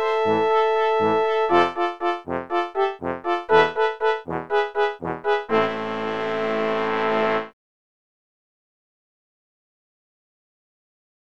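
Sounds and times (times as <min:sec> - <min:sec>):
exciting brass quintet: 0:00.0 - 0:07.5.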